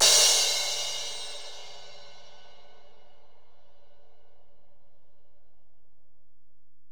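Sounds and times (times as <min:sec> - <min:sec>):
ride cymbal on Alesis DM-PRO: 0:00.0 - 0:03.1.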